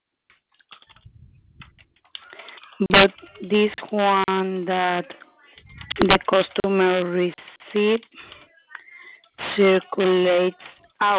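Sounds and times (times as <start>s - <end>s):
quiet keystrokes on a computer keyboard: 0.5s - 3.5s
low rumble: 0.9s - 1.8s, 5.6s - 6.1s
speech: 2.8s - 5.2s, 6.0s - 8.2s, 9.6s - 11.1s.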